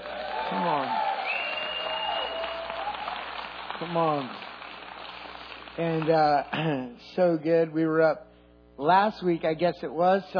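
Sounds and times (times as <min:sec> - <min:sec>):
audience cheering and applauding: 0:00.0 - 0:06.4
speech: 0:00.5 - 0:01.0, 0:03.8 - 0:04.5, 0:05.8 - 0:10.3.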